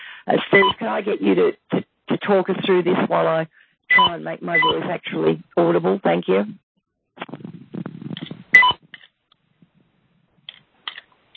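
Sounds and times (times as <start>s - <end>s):
speech: 0.2s - 6.6s
short high electronic beeps over a phone line: 0.5s - 0.8s, 3.9s - 4.8s
rumbling: 7.2s - 10.5s.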